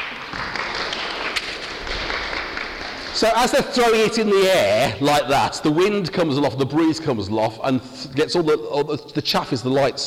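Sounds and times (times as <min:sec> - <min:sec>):
audience applause: 0:00.0 - 0:04.9
speech: 0:03.2 - 0:10.0.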